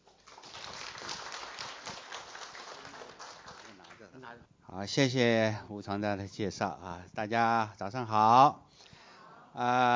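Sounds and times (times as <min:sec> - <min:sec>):
audience applause welcoming a speaker: 0:00.0 - 0:04.2
speech: 0:04.2 - 0:08.6, 0:09.6 - 0:09.9.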